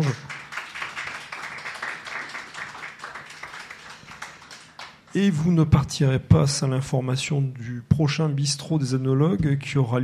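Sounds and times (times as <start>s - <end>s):
audience applauding guests: 0.0s - 5.1s
speech: 5.2s - 10.0s.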